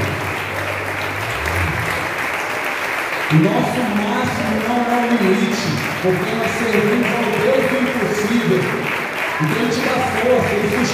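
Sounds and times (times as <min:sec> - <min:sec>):
audience applauding: 0:00.0 - 0:10.9
speech: 0:03.3 - 0:08.8, 0:09.4 - 0:10.9.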